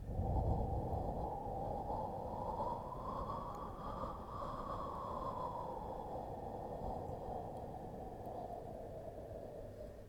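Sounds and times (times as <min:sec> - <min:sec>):
wind: 0:00.0 - 0:10.0.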